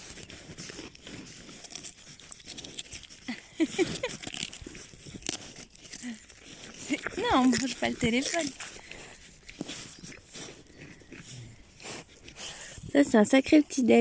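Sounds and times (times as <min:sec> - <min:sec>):
rams gnawing and chewing feed: 0:00.0 - 0:13.9
speech: 0:03.6 - 0:04.3, 0:07.2 - 0:08.6, 0:13.0 - 0:13.9
grunt: 0:11.3 - 0:11.6.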